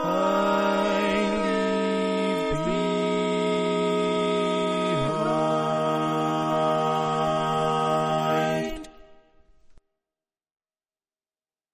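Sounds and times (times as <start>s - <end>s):
barbershop tags sung by all parts: 0.0s - 9.2s.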